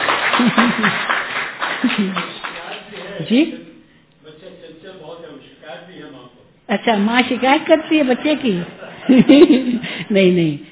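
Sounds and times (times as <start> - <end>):
crowd clapping: 0.0 - 3.2
laughter: 0.3 - 1.1, 1.8 - 2.5, 7.0 - 10.2
speech: 0.4 - 1.2, 1.9 - 2.3, 3.3 - 3.7, 6.7 - 10.6.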